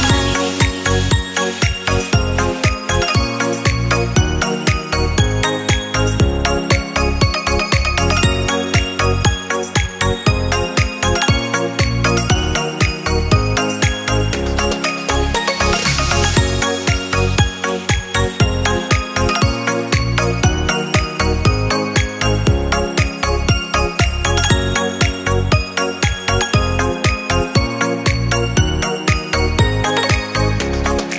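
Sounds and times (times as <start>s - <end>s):
positive Chinese ringtone: 0.0s - 31.1s.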